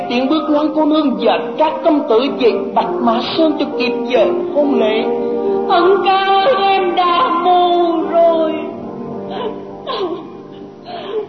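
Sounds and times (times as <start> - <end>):
speech: 0.1 - 8.7, 9.3 - 10.2
woman crying: 6.0 - 11.2.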